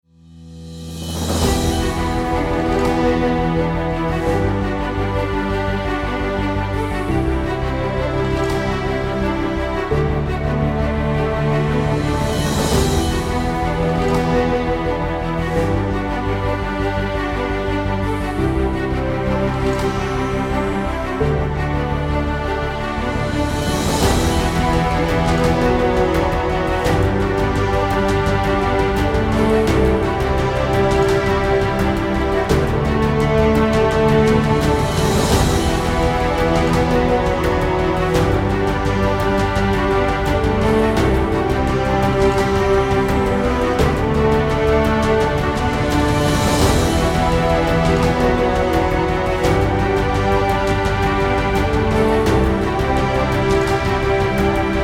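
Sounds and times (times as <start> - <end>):
cinematic inspirational music: 0.0 - 54.8.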